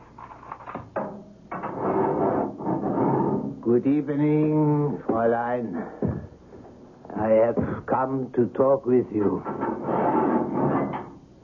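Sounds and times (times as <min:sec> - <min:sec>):
heavy prison cell door being opened: 0:00.3 - 0:03.6, 0:09.2 - 0:11.3
speech: 0:03.7 - 0:06.2, 0:07.2 - 0:09.8.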